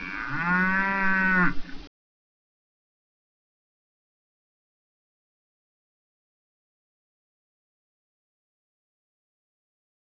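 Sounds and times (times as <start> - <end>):
cow: 0.0 - 1.6.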